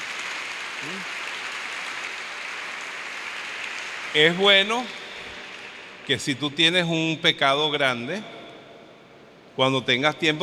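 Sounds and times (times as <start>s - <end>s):
audience applauding: 0.0s - 6.2s
speech: 0.8s - 1.2s, 4.1s - 5.0s, 6.1s - 8.4s, 9.6s - 10.4s.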